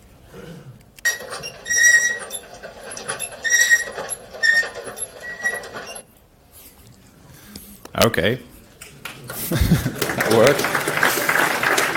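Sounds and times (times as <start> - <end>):
escalator squeaking and grinding: 1.0 - 6.1
speech: 8.0 - 8.5, 10.4 - 10.7
laughter: 9.3 - 11.7.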